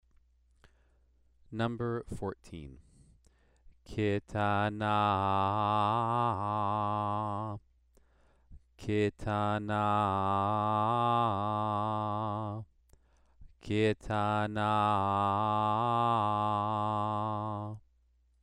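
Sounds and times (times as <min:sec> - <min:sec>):
Torah trope cantillation exercise: 0:03.9 - 0:07.6, 0:08.8 - 0:12.6, 0:13.6 - 0:17.8.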